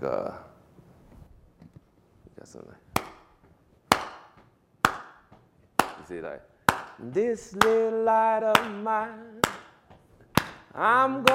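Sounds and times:
speech: 0.0s - 0.5s, 2.5s - 2.9s, 6.1s - 9.6s, 10.8s - 11.3s
rhythmic hand claps: 3.0s - 11.3s.

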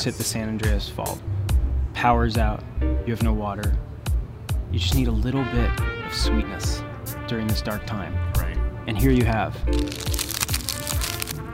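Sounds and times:
speech: 0.0s - 1.4s, 2.0s - 3.9s, 4.7s - 8.3s, 8.9s - 10.2s
freeze-dried ice cream sandwich packaging crinkling as unwrapped: 9.7s - 11.5s.

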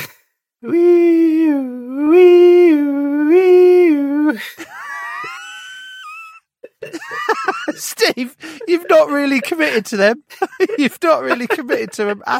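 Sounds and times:
speech: 0.6s - 1.0s, 8.2s - 12.3s
voice imitating ambulance siren: 0.6s - 4.4s
laughter: 4.4s - 12.3s.

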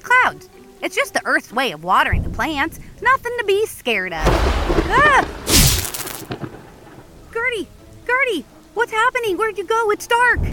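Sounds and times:
speech: 0.8s - 5.4s, 7.4s - 10.5s
loud thunder clap: 4.2s - 7.1s.

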